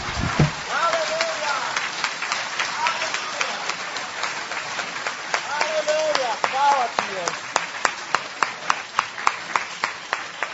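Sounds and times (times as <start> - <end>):
audience applause: 0.0 - 10.5.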